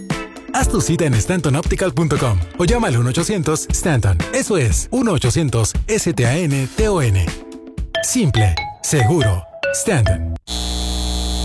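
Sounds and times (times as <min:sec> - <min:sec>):
speech: 0:00.6 - 0:07.4, 0:08.0 - 0:10.4
electrical hum of a data center: 0:10.5 - 0:11.4.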